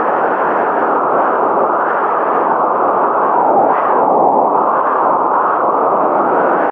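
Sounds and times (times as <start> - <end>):
wind heard inside: 0.0 - 6.6.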